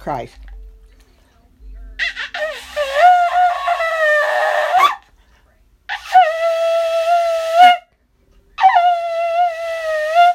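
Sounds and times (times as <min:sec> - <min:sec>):
shofar blasts: 0:02.0 - 0:05.0, 0:05.9 - 0:07.9, 0:08.6 - 0:10.3.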